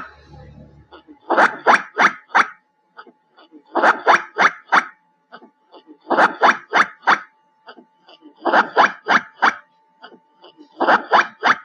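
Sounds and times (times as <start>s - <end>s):
black giant squirrel calls: 1.2s - 2.6s, 3.7s - 5.0s, 6.0s - 7.8s, 8.4s - 10.2s, 10.8s - 11.6s.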